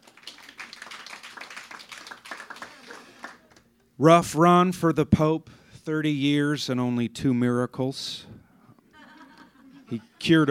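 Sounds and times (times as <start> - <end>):
audience clapping: 0.0 - 3.7
speech: 4.0 - 8.3, 9.9 - 10.4
laughter: 8.9 - 10.4.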